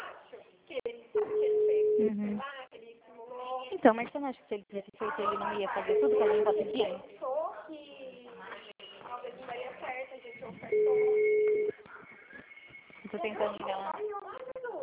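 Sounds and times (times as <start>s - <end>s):
phone ringing tone while calling a Santander bank branch: 1.2s - 2.2s, 5.9s - 6.9s, 10.7s - 11.7s
speech: 2.0s - 2.5s, 3.8s - 7.8s, 13.3s - 13.9s.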